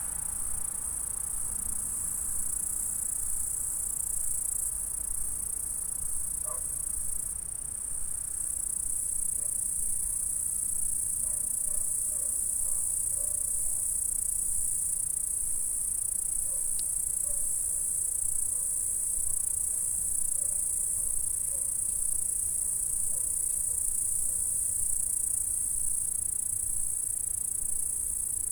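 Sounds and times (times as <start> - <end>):
high-pitched insect stridulation: 0.0 - 28.4.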